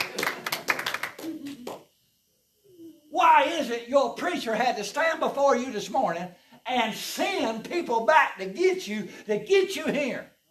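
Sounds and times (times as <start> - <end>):
audience clapping hands: 0.0 - 1.8
speech: 3.5 - 10.3.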